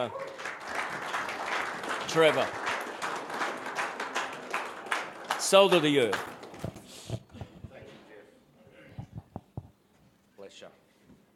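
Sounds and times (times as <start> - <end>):
speech: 0.0 - 0.6, 2.1 - 2.6, 5.5 - 6.3
audience applause welcoming a speaker: 0.0 - 7.0.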